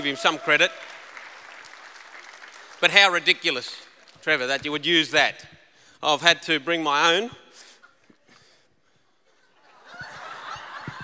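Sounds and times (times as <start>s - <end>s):
speech: 0.0s - 1.0s, 2.8s - 7.4s
audience applause: 0.0s - 3.7s
laughter: 9.3s - 11.0s.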